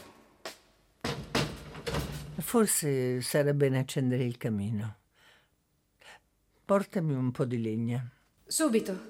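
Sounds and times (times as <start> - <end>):
windows being closed: 1.0 - 2.4
speech: 2.5 - 5.0, 6.7 - 9.0.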